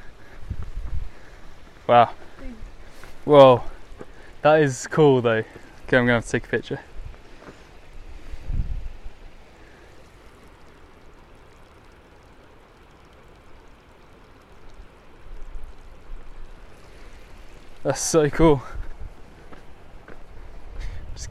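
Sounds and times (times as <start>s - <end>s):
small stream flowing: 0.0s - 21.3s
speech: 1.9s - 2.2s, 3.3s - 3.7s, 4.4s - 6.9s, 17.9s - 18.8s.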